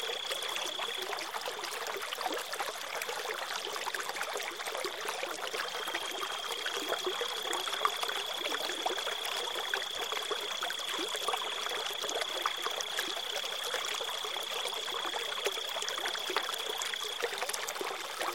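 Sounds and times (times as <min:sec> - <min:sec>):
crickets chirping: 0:00.0 - 0:01.5, 0:05.6 - 0:17.4
wilderness river water flowing: 0:00.0 - 0:18.3.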